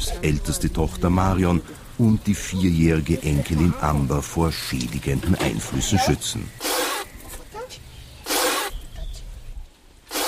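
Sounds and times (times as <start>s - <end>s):
speech: 0.2s - 6.7s
water sprayed from a mouth: 8.3s - 8.8s, 10.1s - 10.2s.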